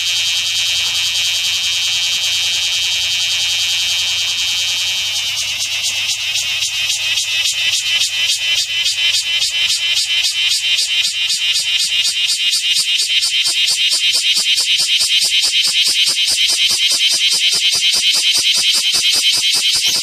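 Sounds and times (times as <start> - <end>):
bear cicada song buzzing drone: 0.0 - 20.0.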